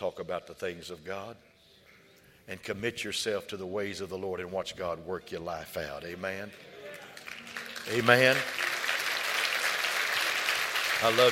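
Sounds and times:
speech: 0.0 - 1.6, 2.5 - 7.0, 7.9 - 8.6, 11.0 - 11.2
audience clapping hands: 6.9 - 11.2.

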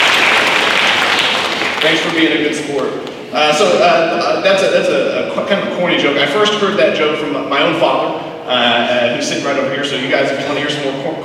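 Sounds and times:
crowd clapping: 0.0 - 3.2
speech: 1.8 - 11.2.

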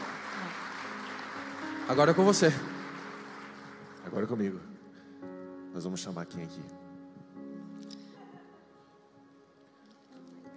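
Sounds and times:
audience applause: 0.0 - 4.6
speech: 1.9 - 2.8, 4.1 - 4.7, 5.8 - 6.8.

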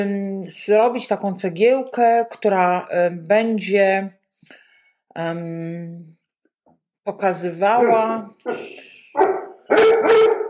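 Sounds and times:
speech: 0.0 - 4.6, 5.2 - 6.2, 7.1 - 10.4
dog barking harshly at something behind door: 9.2 - 10.4.

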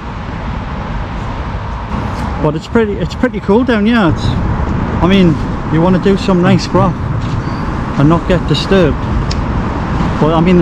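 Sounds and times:
cars driving over a bridge: 0.0 - 10.6
speech: 2.4 - 7.3, 8.0 - 9.2, 10.2 - 10.6.

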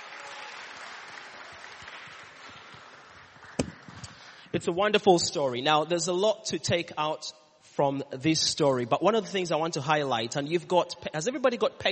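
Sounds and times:
audience applause: 0.0 - 4.0
sharp knock: 3.6 - 3.9
speech: 4.5 - 11.9.

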